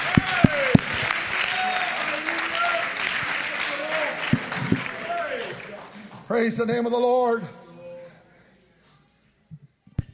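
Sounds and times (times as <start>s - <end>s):
crowd clapping: 0.0s - 6.7s
speech: 6.3s - 7.6s.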